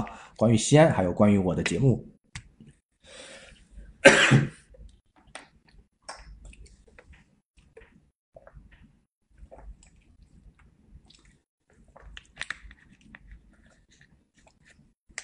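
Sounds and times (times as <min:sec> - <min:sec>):
speech: 0:00.0 - 0:02.1
coughing: 0:04.0 - 0:04.6.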